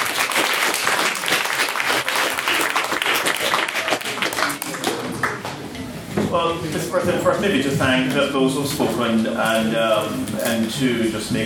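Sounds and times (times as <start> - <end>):
audience applause: 0.0 - 5.5
speech: 6.3 - 11.4.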